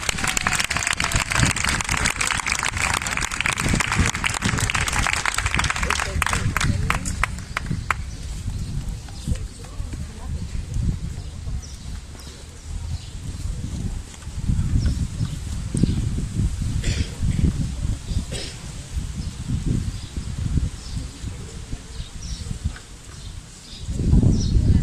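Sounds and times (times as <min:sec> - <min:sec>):
audience applause at a pro-Palestine solidarity event: 0:00.0 - 0:08.0
crowd murmur: 0:00.0 - 0:24.8.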